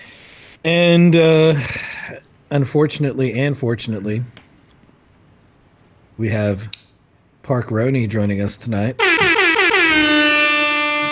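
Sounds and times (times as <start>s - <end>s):
speech: 0.6s - 4.4s, 6.2s - 6.8s, 7.4s - 9.2s
reggae air horn sound effect: 9.0s - 11.1s.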